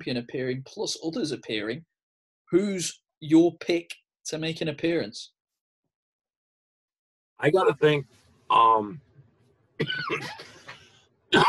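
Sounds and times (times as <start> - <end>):
speech: 0.0 - 1.9, 2.5 - 5.4, 7.4 - 9.1, 9.8 - 10.6
person coughing: 9.8 - 11.4.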